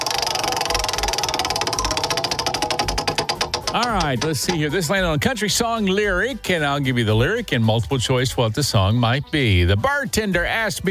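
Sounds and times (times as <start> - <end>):
prize wheel spinning during a radio trivia game: 0.0 - 5.0
speech: 3.7 - 10.8.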